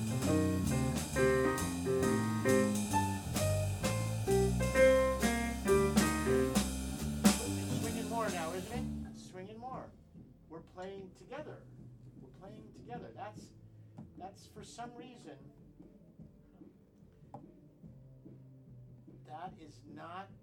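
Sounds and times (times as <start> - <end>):
jazz solo: 0.0 - 9.3.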